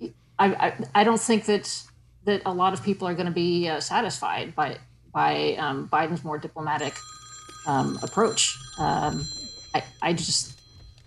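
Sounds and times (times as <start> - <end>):
speech: 0.4 - 10.6
telephone bell ringing: 6.8 - 11.0.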